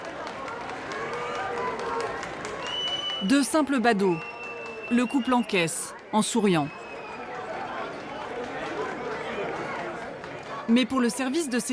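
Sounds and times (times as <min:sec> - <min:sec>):
crowd applause: 0:00.0 - 0:11.7
thin, high whistles: 0:02.6 - 0:03.4, 0:04.1 - 0:05.7, 0:06.6 - 0:07.3
speech: 0:03.2 - 0:04.3, 0:04.9 - 0:06.8, 0:10.7 - 0:11.7.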